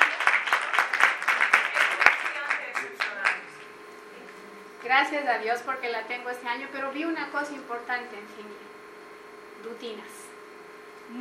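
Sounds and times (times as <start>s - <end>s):
audience applause: 0.0s - 3.5s
speech: 5.0s - 8.7s, 9.6s - 10.2s.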